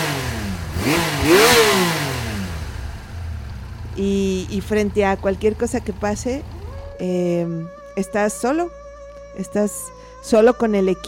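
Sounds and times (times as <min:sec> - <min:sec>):
motorcycle engine revving: 0:00.0 - 0:07.6
speech: 0:04.0 - 0:08.8, 0:09.4 - 0:11.0.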